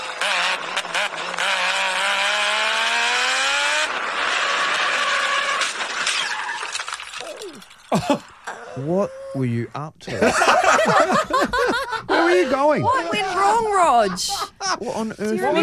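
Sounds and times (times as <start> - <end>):
laughter: 0.0 - 1.6, 7.9 - 8.3, 10.1 - 15.6
race car engine screaming: 0.0 - 6.8
squeal and clatter: 5.2 - 7.9
speech: 8.0 - 15.6.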